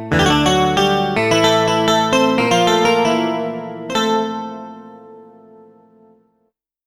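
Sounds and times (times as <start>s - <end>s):
electro music: 0.1s - 4.8s.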